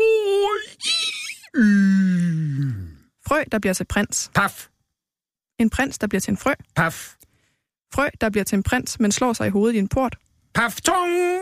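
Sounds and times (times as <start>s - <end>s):
person imitating Santa Claus yawning: 0.3s - 3.1s
speech: 3.3s - 4.7s, 5.6s - 7.2s, 7.9s - 11.3s.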